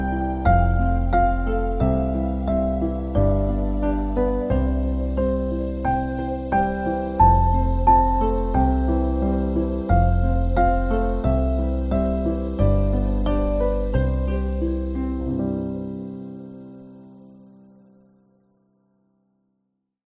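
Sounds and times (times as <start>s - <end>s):
nursery rhyme melody: 0.0s - 17.7s.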